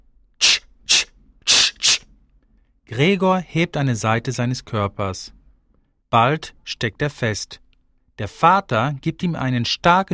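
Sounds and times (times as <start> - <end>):
sharp hissing bursts: 0.4 - 2.0
speech: 2.9 - 5.4, 6.1 - 7.6, 8.2 - 10.1.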